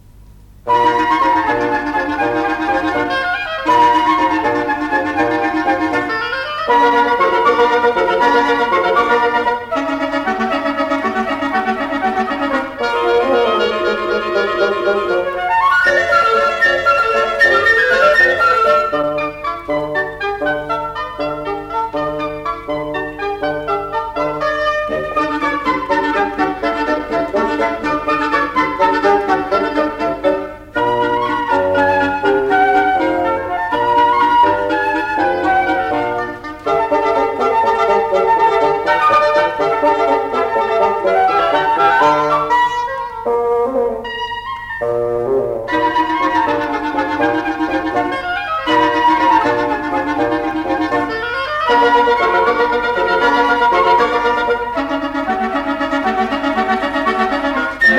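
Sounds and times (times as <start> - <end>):
woodwind quintet playing an Allegro vivo: 0.6 - 57.9.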